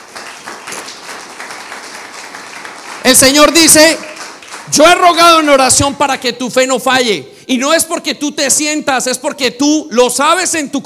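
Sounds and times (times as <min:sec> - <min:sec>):
church congregation applauding: 0:00.0 - 0:06.1
speech: 0:03.1 - 0:04.1, 0:04.7 - 0:10.8.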